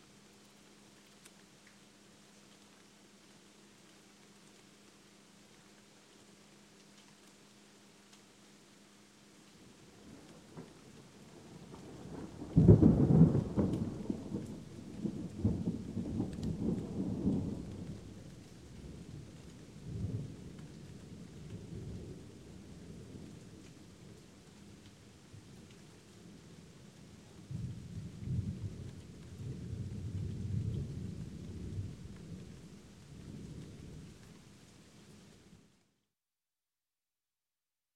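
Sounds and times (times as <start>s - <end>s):
light rain: 0.0s - 36.1s
light thunder: 11.6s - 18.2s, 27.5s - 32.6s.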